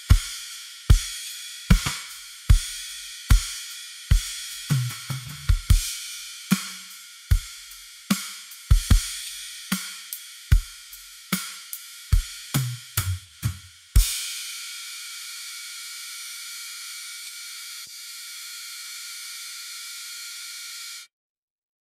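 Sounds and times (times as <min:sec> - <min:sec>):
drums: 0:00.0 - 0:15.1.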